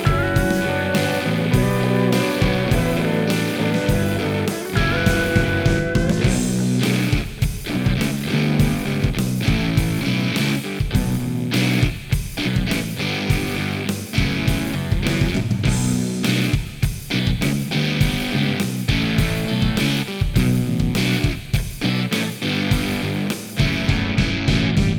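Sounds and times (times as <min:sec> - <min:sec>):
rock music: 0:00.0 - 0:24.9.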